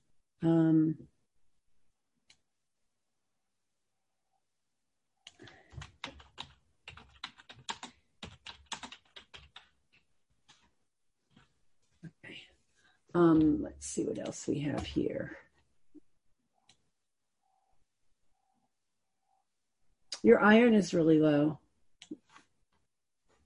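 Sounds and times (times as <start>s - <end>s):
speech: 0.4s - 1.1s, 13.2s - 15.4s, 20.2s - 22.2s
rapid typing on a computer keyboard: 5.3s - 10.7s.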